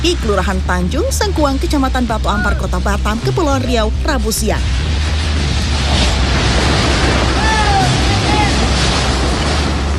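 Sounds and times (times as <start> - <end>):
speech: 0.0 - 5.2
strong wind blowing a roof away in an industrial area: 0.0 - 9.9.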